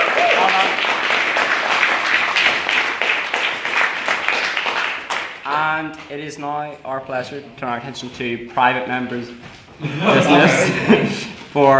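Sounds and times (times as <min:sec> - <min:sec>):
round of applause: 0:00.0 - 0:05.8
speech: 0:05.8 - 0:11.7
laughter: 0:09.8 - 0:11.4.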